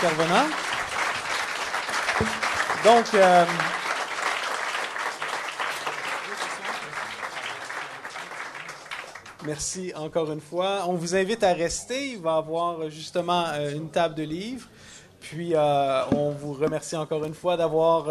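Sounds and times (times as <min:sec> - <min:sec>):
speech: 0:00.0 - 0:00.6, 0:02.2 - 0:03.8, 0:09.5 - 0:14.7, 0:15.3 - 0:18.0
audience applause: 0:00.0 - 0:09.4.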